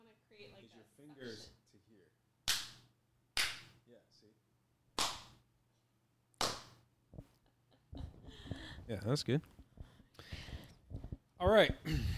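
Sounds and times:
speech: 0.4 - 2.2, 3.9 - 4.5, 8.9 - 9.6, 11.4 - 12.1
hand clap: 2.5 - 3.8, 5.0 - 5.4, 6.4 - 7.3.

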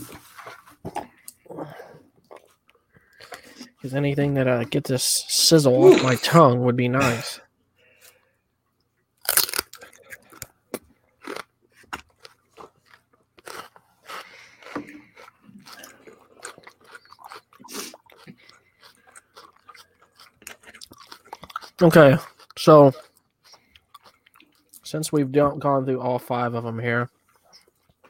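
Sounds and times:
speech: 3.8 - 7.4, 21.8 - 23.0, 24.9 - 27.2
wet chewing: 9.2 - 24.8, 27.2 - 28.0
crunching celery: 9.2 - 24.9.

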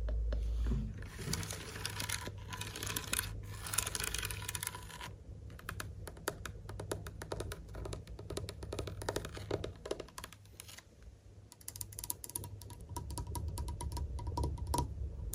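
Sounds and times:
steady low hum: 0.0 - 15.3
lens tapping and scratching: 1.0 - 6.3, 6.9 - 10.8.

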